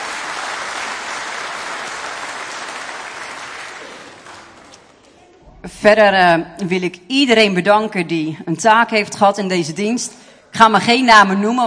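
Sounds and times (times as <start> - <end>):
crowd applause: 0.0 - 5.0
speech: 5.6 - 11.6.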